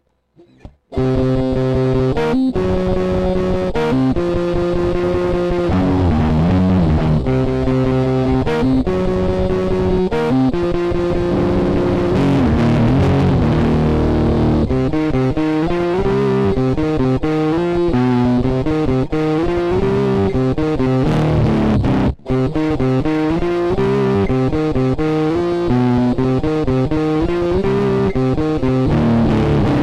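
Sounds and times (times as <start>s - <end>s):
electric guitar through a bit crusher octave-down fuzz, blended with dry guitar: 0.0s - 29.8s.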